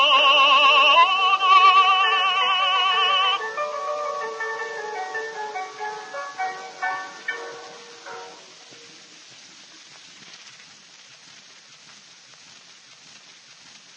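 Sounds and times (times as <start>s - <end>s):
piano piece: 0.0s - 9.0s.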